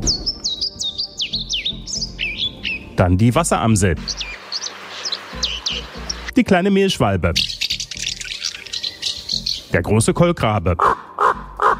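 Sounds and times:
European pied flycatcher song: 0:00.0 - 0:03.0, 0:03.6 - 0:09.8
speech: 0:03.0 - 0:04.3, 0:06.4 - 0:07.5, 0:09.7 - 0:11.0.

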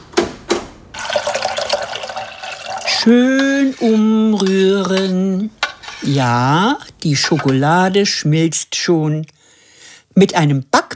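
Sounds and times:
water running for a water bath: 0:01.0 - 0:06.6
speech: 0:03.0 - 0:09.4, 0:10.2 - 0:10.8.

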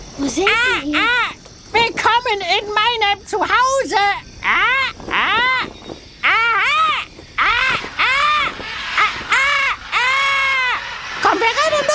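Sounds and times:
constant hiss of noise: 0:00.0 - 0:11.9
frogs calling in rainforest jungle: 0:00.0 - 0:11.9
speech: 0:00.2 - 0:01.2, 0:02.3 - 0:05.5.

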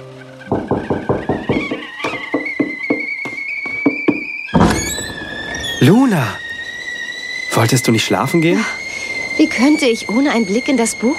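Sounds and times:
kettle whistling: 0:00.0 - 0:11.1
firm knocks on a door: 0:00.5 - 0:04.9
speech: 0:05.8 - 0:06.4, 0:07.6 - 0:08.8, 0:09.4 - 0:11.1.

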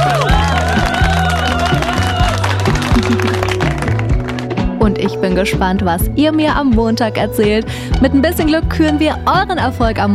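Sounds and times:
applause: 0:00.0 - 0:04.8
speech: 0:05.4 - 0:10.1.

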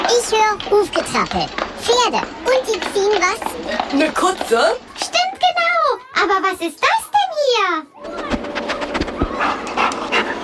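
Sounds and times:
speech: 0:00.1 - 0:05.2, 0:06.2 - 0:07.0, 0:07.6 - 0:08.2
sniffer dog sniffing excitedly: 0:08.7 - 0:10.4.

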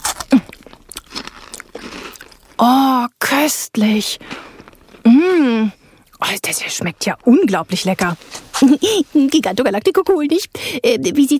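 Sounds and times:
crunchy star-shaped cookie with sprinkled topping being bitten: 0:00.0 - 0:02.6
speech: 0:02.6 - 0:04.4, 0:05.0 - 0:11.3.

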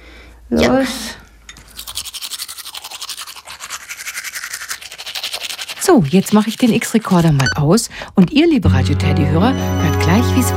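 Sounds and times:
speech: 0:00.5 - 0:01.2, 0:05.9 - 0:10.5
toothbrush with toothpaste scrubbing teeth: 0:01.6 - 0:07.4.

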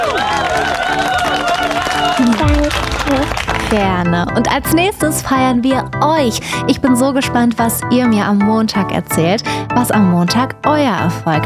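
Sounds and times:
applause: 0:00.0 - 0:04.4
speech: 0:03.7 - 0:11.4.

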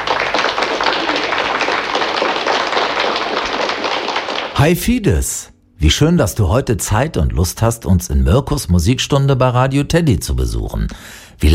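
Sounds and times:
applause: 0:00.0 - 0:04.7
speech: 0:04.6 - 0:11.5.

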